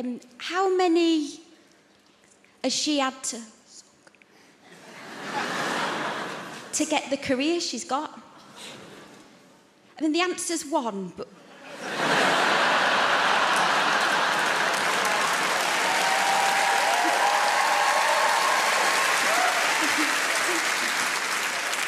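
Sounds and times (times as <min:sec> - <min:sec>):
speech: 0:00.0 - 0:01.5, 0:02.6 - 0:03.6, 0:06.8 - 0:08.8, 0:10.0 - 0:12.0
laughter: 0:04.8 - 0:06.7, 0:11.6 - 0:15.9, 0:19.3 - 0:21.1
audience applause: 0:12.0 - 0:21.8.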